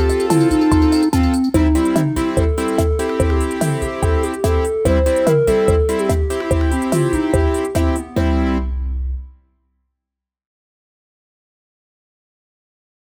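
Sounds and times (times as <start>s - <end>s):
MIDI blues music: 0.0s - 8.6s.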